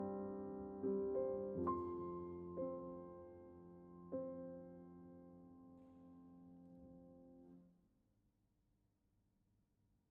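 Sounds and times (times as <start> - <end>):
piano arrangement: 0.0 - 7.6.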